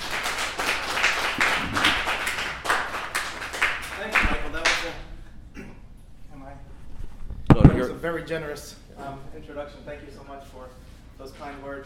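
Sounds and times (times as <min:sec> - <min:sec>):
audience applauding a speaker at a Sacramento County public health committee event: 0:00.0 - 0:04.8
speech: 0:08.1 - 0:11.8.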